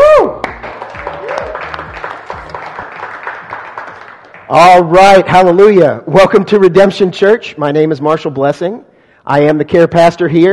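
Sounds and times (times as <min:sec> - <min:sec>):
audience clapping hands: 0:00.3 - 0:05.0
speech: 0:04.5 - 0:10.5.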